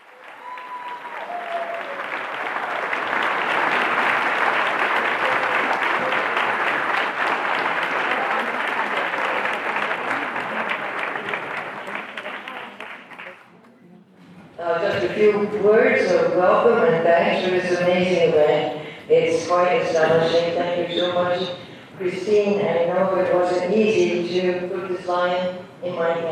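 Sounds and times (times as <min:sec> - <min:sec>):
large audience applauding at an award ceremony: 0:00.0 - 0:13.6
speech: 0:15.6 - 0:26.3.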